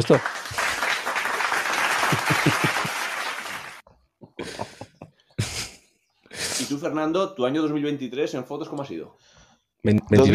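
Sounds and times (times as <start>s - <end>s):
speech: 0.0s - 0.4s, 6.7s - 9.2s, 9.8s - 10.3s
applause: 0.0s - 3.8s
laughter: 0.5s - 3.7s, 4.3s - 5.6s.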